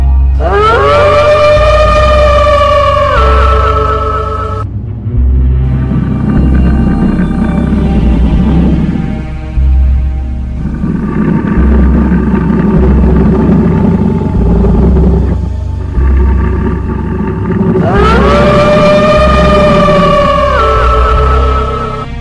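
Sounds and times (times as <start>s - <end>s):
castle horror ghost ringtone: 0.1s - 22.1s.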